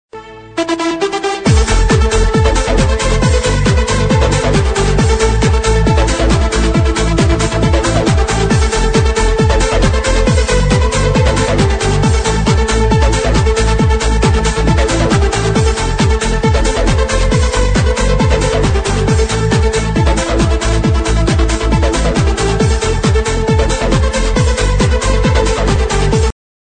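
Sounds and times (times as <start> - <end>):
techno ringtone: 0.7 - 26.2.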